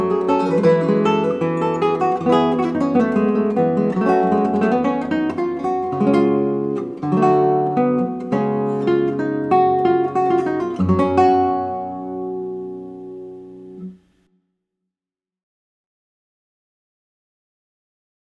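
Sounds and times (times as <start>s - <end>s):
classical guitar playing: 0.0s - 14.3s.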